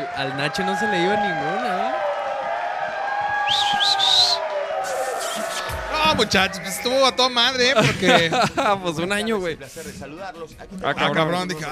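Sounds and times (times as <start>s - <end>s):
canned applause sound effect: 0.0s - 7.7s
speech: 0.2s - 2.0s, 3.5s - 4.3s, 6.0s - 11.6s
rising whistles: 3.4s - 7.1s
laughter: 7.6s - 9.0s.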